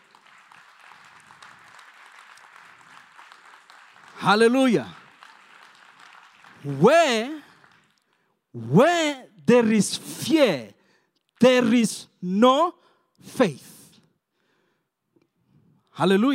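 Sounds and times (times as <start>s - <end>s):
audience clapping hands: 0.0s - 8.4s
speech: 4.2s - 5.0s, 6.6s - 7.4s, 8.6s - 10.7s, 11.4s - 13.8s, 16.0s - 16.3s.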